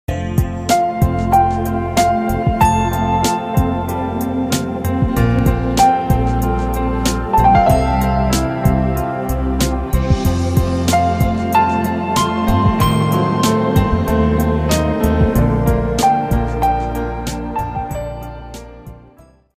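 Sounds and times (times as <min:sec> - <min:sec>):
piano ringtone: 0:00.1 - 0:19.4.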